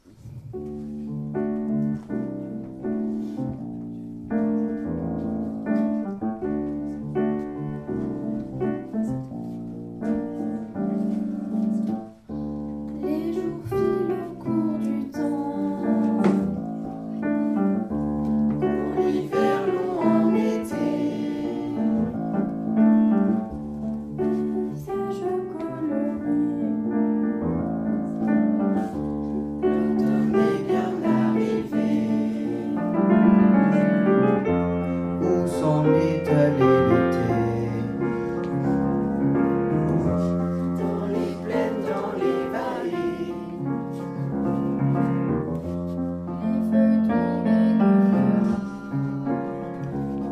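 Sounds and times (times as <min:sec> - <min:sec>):
jazz music: 0:00.0 - 0:50.3.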